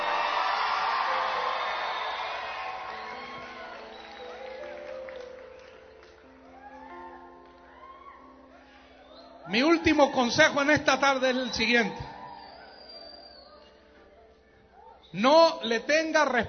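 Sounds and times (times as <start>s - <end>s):
crowd of teenagers shouting and cheering: 0.0s - 5.6s, 6.4s - 13.7s
speech: 9.5s - 12.1s, 15.1s - 16.4s.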